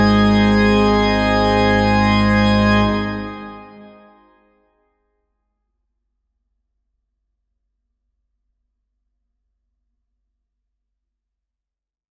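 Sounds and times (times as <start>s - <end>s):
organist playing a postlude: 0.0s - 4.2s.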